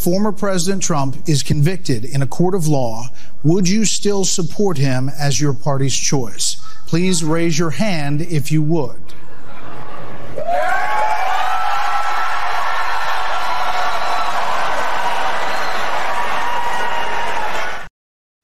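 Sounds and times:
speech: 0.0 - 9.2
laughter: 9.1 - 10.9
Republican debate audience cheering and whooping: 9.5 - 17.9.

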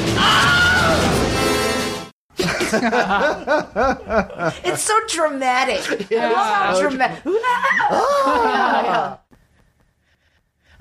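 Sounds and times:
Wilhelm scream stock film sound effect: 0.2 - 1.2
laughter: 2.4 - 4.8, 5.7 - 9.3
speech: 2.7 - 9.2.

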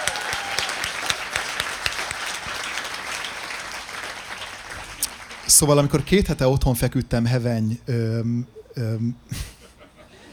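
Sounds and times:
crowd applause: 0.0 - 6.2
speech: 5.5 - 9.4
laughter: 9.3 - 10.3.

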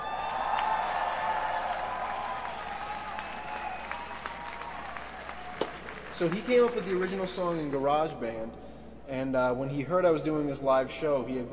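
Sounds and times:
live audience round of applause: 0.0 - 7.8
speech: 6.2 - 11.5.

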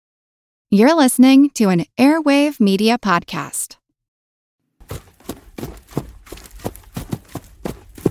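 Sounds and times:
speech: 0.7 - 3.8
hoofbeats of draft horses: 4.8 - 8.0.

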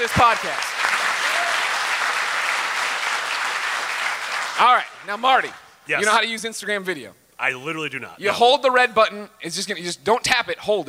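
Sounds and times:
speech: 0.0 - 0.7, 4.6 - 10.8
audience applause: 0.0 - 5.1.

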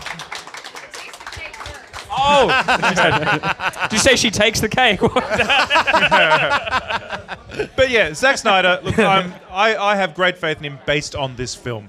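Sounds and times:
audience applause: 0.0 - 4.0
laughter: 2.1 - 9.8
speech: 2.2 - 11.8.

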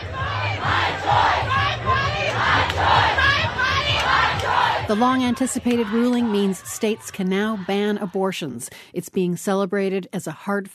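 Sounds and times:
crowd cheering outside the US Supreme Court: 0.0 - 8.6
speech: 4.9 - 10.7.

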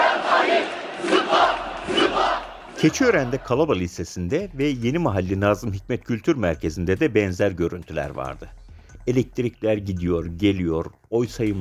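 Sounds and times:
crowd chanting protest slogans: 0.0 - 3.4
speech: 2.8 - 11.5.

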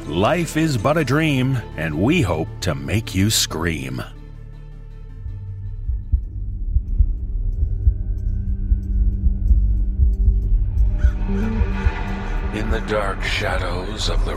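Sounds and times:
speech: 0.1 - 4.2, 12.8 - 14.3
deep steady heartbeat sound effect: 5.2 - 13.4
low droning rumble: 5.3 - 14.3.

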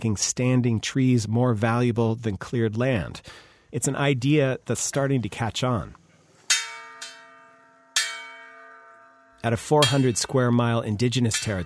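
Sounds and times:
speech: 0.0 - 6.0, 9.4 - 11.6
brass bell rung by the Munduruku chief to call a community meeting: 6.5 - 11.6.

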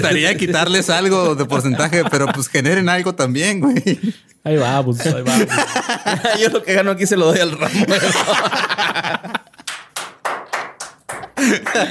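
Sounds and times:
speech: 0.0 - 9.5, 11.4 - 11.9
laughter: 1.2 - 2.8, 3.6 - 9.7, 11.3 - 11.9
person clapping hands: 9.5 - 11.9.

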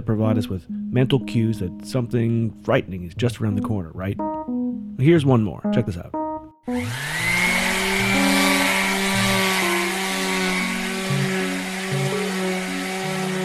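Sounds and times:
speech: 0.0 - 4.4, 5.0 - 7.3
electric sander running: 6.7 - 13.4.

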